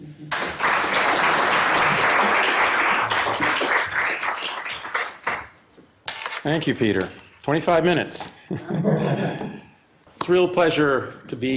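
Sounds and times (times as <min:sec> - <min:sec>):
audience applause at an LSE Festival lecture welcoming the speakers: 0:00.3 - 0:05.5
speech: 0:06.4 - 0:09.6, 0:10.3 - 0:11.5
laughter: 0:08.4 - 0:09.8.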